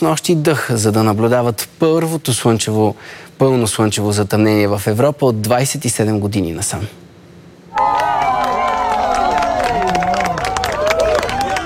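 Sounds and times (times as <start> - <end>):
speech: 0.0 - 7.0
crowd applause: 7.7 - 11.6
joyful cheering: 7.7 - 11.6.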